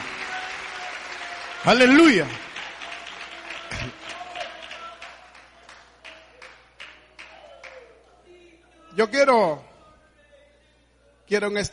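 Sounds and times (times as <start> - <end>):
audience clapping: 0.0 - 8.1
speech: 1.6 - 2.4, 9.0 - 9.7, 11.3 - 11.7.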